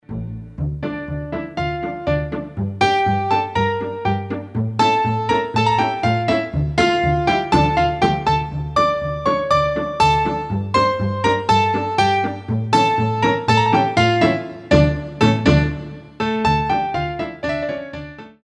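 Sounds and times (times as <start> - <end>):
ballet pirouette music: 0.0 - 18.4.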